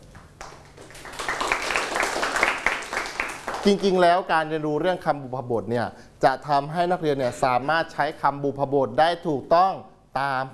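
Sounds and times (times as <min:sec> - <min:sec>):
group of students applauding in a classroom: 0:00.1 - 0:04.0
speech: 0:03.6 - 0:10.5.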